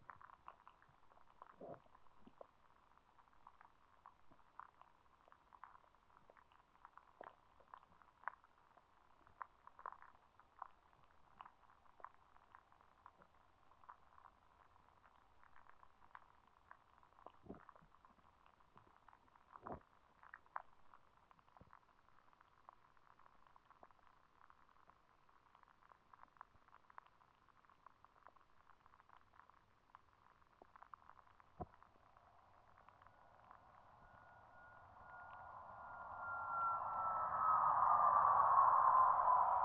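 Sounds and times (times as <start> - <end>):
airplane noise: 33.0 - 39.6.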